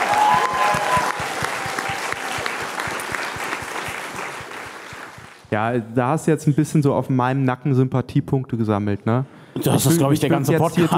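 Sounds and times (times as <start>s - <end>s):
audience applause: 0.0s - 5.5s
speech: 5.5s - 10.9s.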